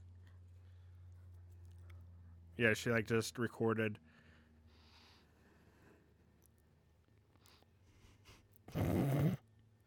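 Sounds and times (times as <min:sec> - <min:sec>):
speech: 0:02.6 - 0:04.1
remix of a man snoring: 0:08.7 - 0:09.4.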